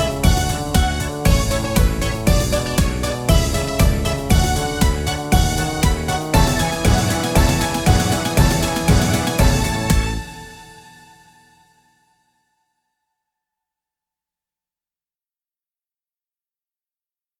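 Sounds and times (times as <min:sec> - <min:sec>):
cheerful folk music: 0:00.0 - 0:10.9.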